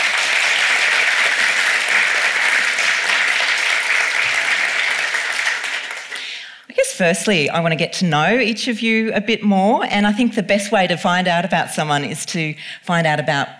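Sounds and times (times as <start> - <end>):
audience at a literary event applauding to welcome two novelists: 0.0 - 6.5
speech: 7.0 - 13.5.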